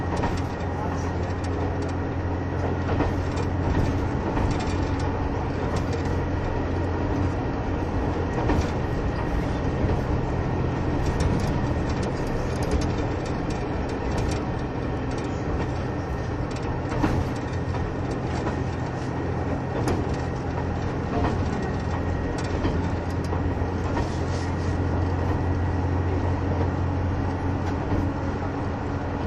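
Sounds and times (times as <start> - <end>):
light clicks and rattles: 0.0 - 2.0, 2.6 - 7.4, 10.8 - 26.7
KiHa 71 series Yufuin no Mori diesel train engine drone between Yufuin and Beppu: 0.0 - 29.2.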